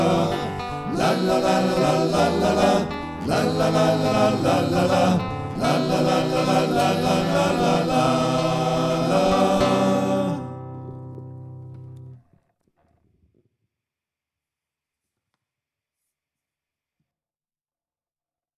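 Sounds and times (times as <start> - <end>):
three voices: 0.0 - 11.0.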